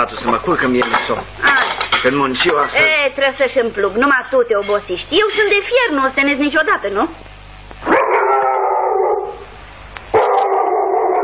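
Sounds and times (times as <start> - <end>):
speech: 0.0 - 7.2
dog howling and barking: 7.8 - 9.5, 10.1 - 11.2.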